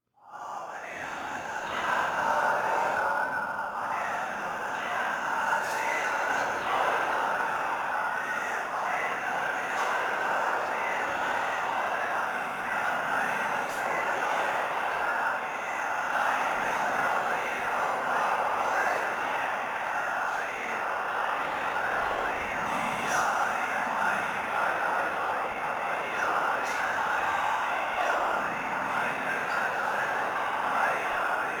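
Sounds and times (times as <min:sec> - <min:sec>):
whispering drone: 0:00.3 - 0:31.5.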